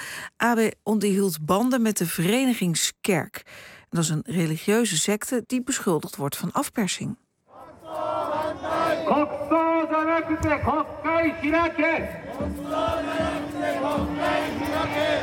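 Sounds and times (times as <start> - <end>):
speech: 0.4 - 7.2, 9.1 - 15.2
crowd of demonstrators shouting in unison in a city square: 7.5 - 15.2.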